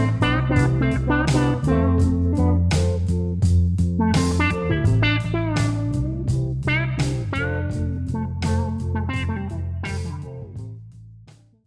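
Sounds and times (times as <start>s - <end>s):
electric guitar with mellow low pass filter and overdrive: 0.0s - 3.2s, 4.0s - 10.5s.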